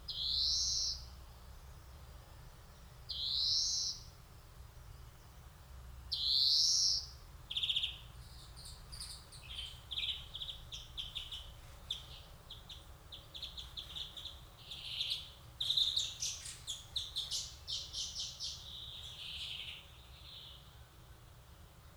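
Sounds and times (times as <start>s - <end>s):
Chloris chloris: 0.1s - 1.1s, 3.1s - 4.1s, 6.1s - 20.7s.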